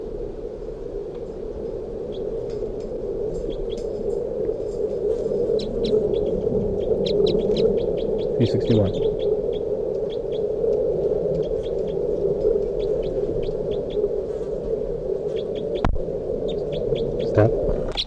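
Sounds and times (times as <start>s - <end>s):
low hum: 0.0s - 18.0s
bird calling in response: 5.6s - 9.3s, 11.4s - 11.9s, 12.8s - 14.5s, 16.5s - 18.0s
speech: 8.4s - 9.1s.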